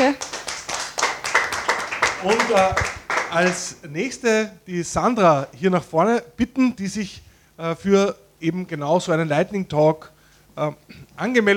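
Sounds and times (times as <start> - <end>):
audience applause: 0.0 - 3.7
speech: 2.2 - 11.5.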